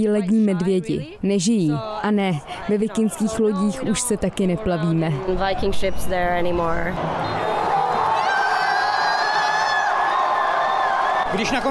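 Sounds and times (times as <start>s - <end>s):
speech: 0.0s - 7.5s, 11.3s - 11.7s
crowd of team members and fans cheering and whooping in celebration: 7.0s - 11.7s.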